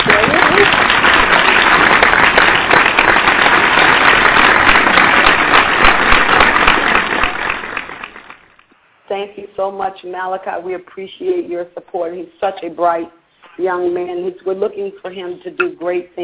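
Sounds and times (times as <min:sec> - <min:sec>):
hands clapping: 0:00.0 - 0:08.7
speech: 0:09.7 - 0:16.2.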